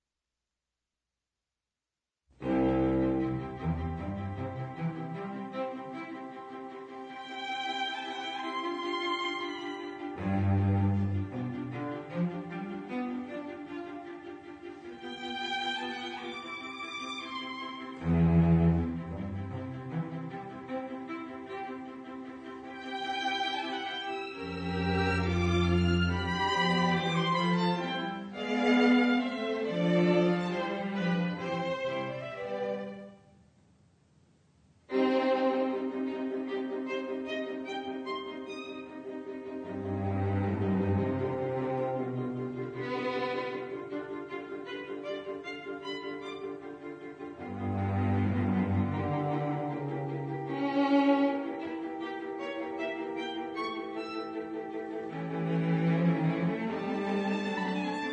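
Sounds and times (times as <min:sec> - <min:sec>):
viola quintet in C playing allegro: 0:02.4 - 0:33.3, 0:34.9 - 0:58.1.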